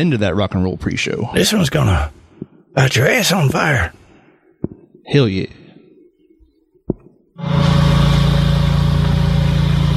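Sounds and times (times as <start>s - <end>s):
speech: 0.0s - 2.2s, 2.8s - 4.0s, 5.1s - 5.6s
lawnmower engine running: 7.4s - 9.9s.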